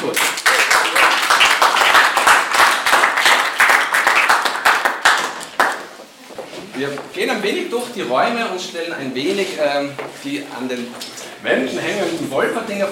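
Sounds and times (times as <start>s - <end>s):
audience applause: 0.0s - 6.0s
speech: 6.8s - 12.9s.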